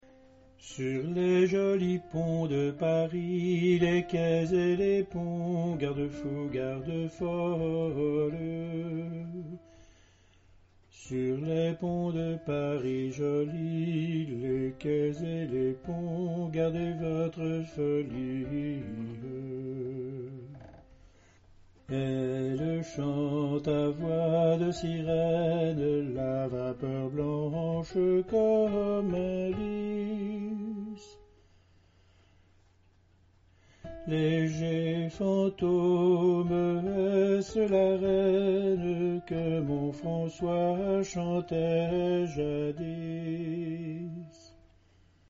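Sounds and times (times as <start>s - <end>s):
alto singing: 0.1s - 9.8s, 10.9s - 20.9s, 21.8s - 31.3s, 33.8s - 44.7s.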